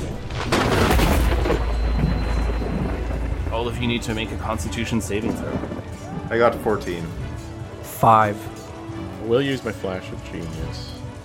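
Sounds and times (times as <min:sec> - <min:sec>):
thunderclap: 0:00.0 - 0:07.8
speech: 0:03.6 - 0:07.2, 0:08.0 - 0:08.6, 0:09.3 - 0:11.0.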